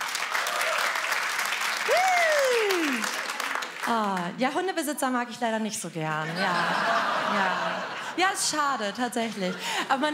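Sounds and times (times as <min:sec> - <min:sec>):
audience clapping: 0:00.0 - 0:04.4
speech: 0:03.9 - 0:10.1
laughter: 0:06.2 - 0:10.1.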